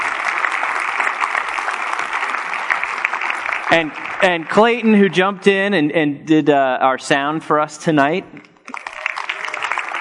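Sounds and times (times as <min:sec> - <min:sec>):
audience round of applause: 0:00.0 - 0:04.9, 0:08.6 - 0:10.0
speech: 0:03.7 - 0:08.5.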